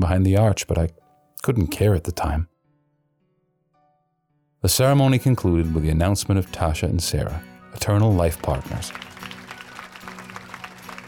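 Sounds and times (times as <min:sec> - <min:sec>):
speech: 0:00.0 - 0:02.5, 0:04.6 - 0:09.1
crowd of wedding guests applauding: 0:08.3 - 0:11.0.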